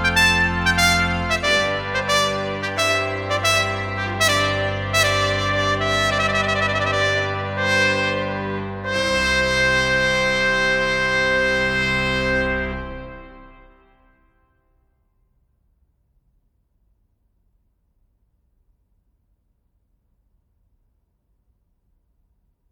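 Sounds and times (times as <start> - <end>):
organ: 0.0 - 14.2
solo trumpet: 0.0 - 14.5.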